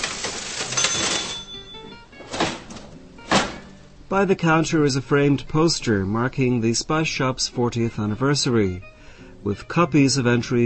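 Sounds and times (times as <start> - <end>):
old mechanical metal cash register clattering: 0.0 - 3.7
speech: 4.1 - 10.6.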